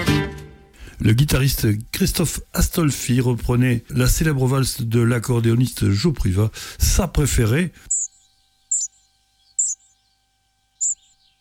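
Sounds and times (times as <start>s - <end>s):
speech: 1.0s - 8.0s
spotted flycatcher song: 7.9s - 11.3s.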